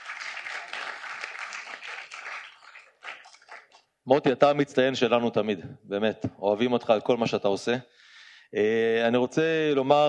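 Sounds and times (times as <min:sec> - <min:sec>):
audience applause: 0:00.0 - 0:03.8
speech: 0:04.0 - 0:10.0.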